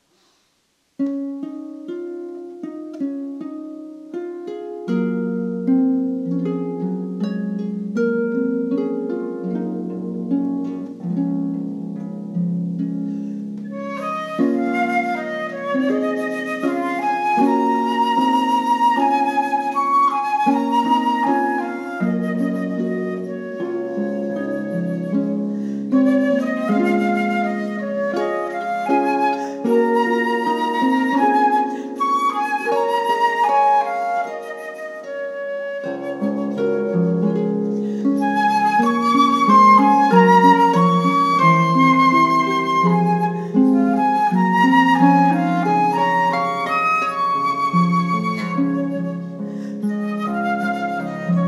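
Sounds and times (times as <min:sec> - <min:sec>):
celtic tune: 0:01.0 - 0:51.4.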